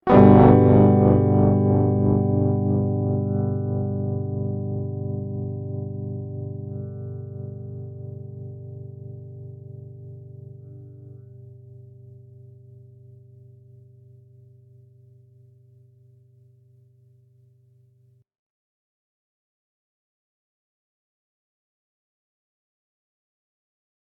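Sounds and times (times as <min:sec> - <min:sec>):
musical notes rising in G minor seventh: 0:00.0 - 0:09.9.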